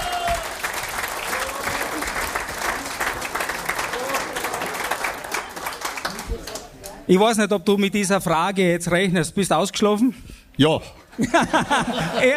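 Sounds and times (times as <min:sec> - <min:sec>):
audience applause: 0:00.0 - 0:06.9
speech: 0:07.1 - 0:12.3
laughter: 0:11.2 - 0:12.3.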